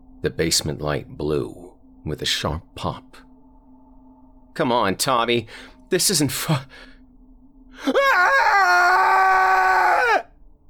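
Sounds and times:
speech: 0:00.2 - 0:03.2, 0:04.6 - 0:06.9
blood-curdling scream: 0:07.8 - 0:10.3.

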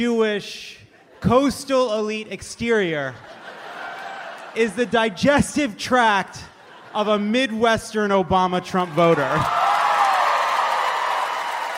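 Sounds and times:
speech: 0:00.0 - 0:03.5, 0:04.5 - 0:09.6
laughter: 0:02.7 - 0:08.0
audience applauding: 0:08.9 - 0:11.7.

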